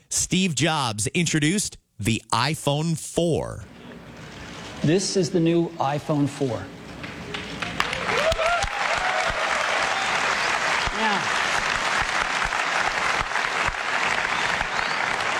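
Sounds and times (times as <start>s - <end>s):
speech: 0.3s - 3.7s, 4.8s - 6.8s
excited crowd applauding at product launch: 7.1s - 15.3s
cheers and whoops: 7.8s - 11.4s.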